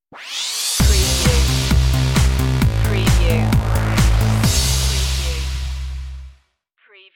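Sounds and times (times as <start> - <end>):
dreamwave stinger: 0.8 - 6.3.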